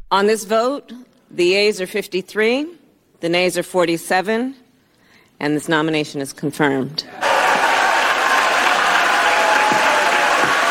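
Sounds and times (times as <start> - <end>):
speech: 0.1 - 4.6, 5.4 - 7.2
senators applauding after confirmation vote: 7.2 - 10.6
senators cheering after confirmation vote: 7.2 - 10.6.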